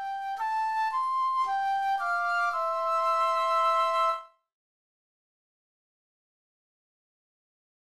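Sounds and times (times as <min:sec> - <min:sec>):
flute playing a hymn: 0:00.0 - 0:04.4.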